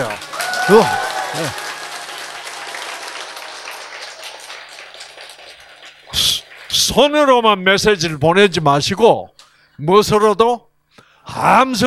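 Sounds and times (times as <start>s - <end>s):
speech: 0.0s - 1.6s, 6.9s - 10.7s, 11.3s - 11.8s
audience clapping: 0.0s - 7.6s.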